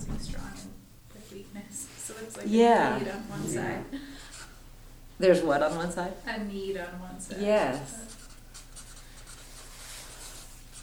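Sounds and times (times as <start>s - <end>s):
low steady hum: 0.0s - 10.8s
speech: 1.3s - 4.2s, 5.2s - 8.2s
handwriting: 7.7s - 10.8s.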